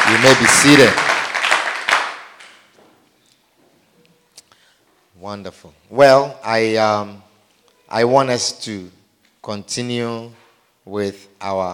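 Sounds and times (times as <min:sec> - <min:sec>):
crowd clapping hands: 0:00.0 - 0:02.7
speech: 0:00.1 - 0:01.1, 0:05.2 - 0:07.2, 0:07.9 - 0:11.7.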